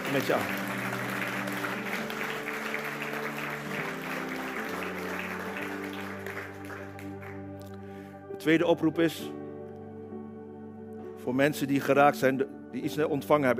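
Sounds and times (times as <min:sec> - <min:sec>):
applause: 0:00.0 - 0:07.9
speech: 0:00.1 - 0:00.6, 0:08.4 - 0:09.4, 0:11.2 - 0:13.5.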